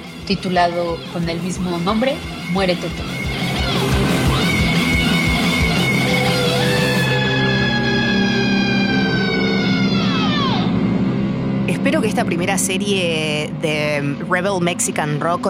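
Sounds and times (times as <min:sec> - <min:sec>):
dense wall of distortion: 0:00.0 - 0:15.4
speech: 0:00.3 - 0:03.2, 0:11.8 - 0:15.4
pounding drums: 0:02.3 - 0:07.0
wailing siren-like sliding lines: 0:02.8 - 0:10.9.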